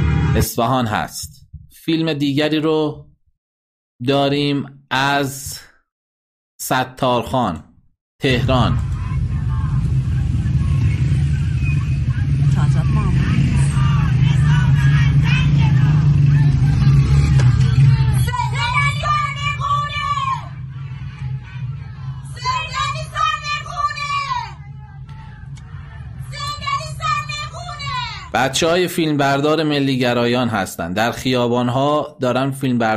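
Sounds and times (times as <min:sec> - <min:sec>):
speech: 0:00.4 - 0:03.1, 0:04.0 - 0:05.7, 0:06.6 - 0:08.9, 0:28.4 - 0:32.9
steady traffic rumble: 0:08.2 - 0:30.6
street crowd babble: 0:08.4 - 0:28.4.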